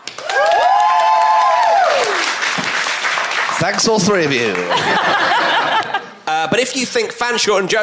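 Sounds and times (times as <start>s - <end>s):
Machynlleth Comedy Festival audience applauding: 0.0s - 6.0s
cheers and whoops: 0.1s - 2.4s
speech: 3.6s - 7.8s
laughter: 4.4s - 6.5s.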